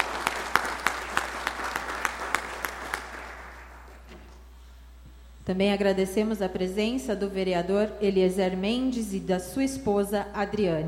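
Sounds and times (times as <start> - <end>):
audience applause: 0.0 - 4.0
speech: 5.5 - 10.8.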